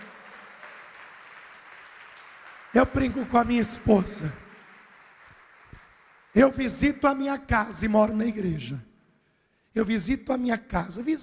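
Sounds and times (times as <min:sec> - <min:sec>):
congregation applauding during a church service: 0:00.0 - 0:08.0
speech: 0:02.7 - 0:04.4, 0:06.4 - 0:08.9, 0:09.8 - 0:11.2.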